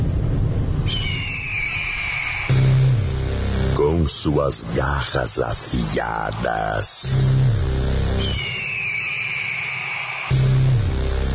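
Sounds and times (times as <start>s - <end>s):
deep tone: 0.0s - 4.8s, 5.8s - 8.5s
low rumble: 0.0s - 8.5s, 10.3s - 11.3s
eagle screech: 0.9s - 2.7s, 8.2s - 10.4s
speech: 4.0s - 7.6s.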